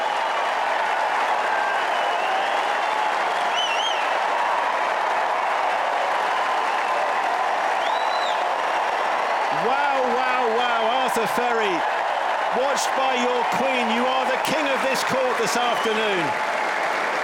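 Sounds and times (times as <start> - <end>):
crowd applause at a tennis match: 0.0 - 17.2
crowd whistles: 1.7 - 4.1, 7.8 - 8.4
speech: 11.2 - 16.5.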